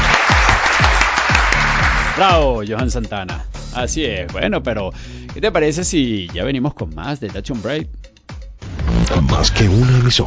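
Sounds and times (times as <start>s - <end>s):
crowd applause: 0.0s - 2.4s
deep rhythmic thumps: 0.0s - 10.2s
speech: 2.2s - 8.0s, 8.9s - 10.2s.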